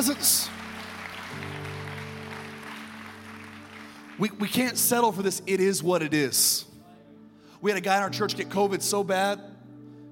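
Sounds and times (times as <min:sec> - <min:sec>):
speech: 0:00.0 - 0:00.7, 0:04.2 - 0:06.7, 0:07.6 - 0:09.6
audience hand clapping: 0:00.0 - 0:04.8.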